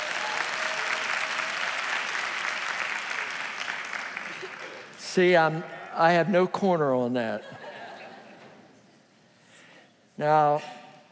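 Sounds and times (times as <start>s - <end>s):
crowd of women clapping hands: 0.0s - 5.0s
speech: 5.2s - 7.6s, 10.2s - 10.8s
laughter: 7.4s - 8.7s.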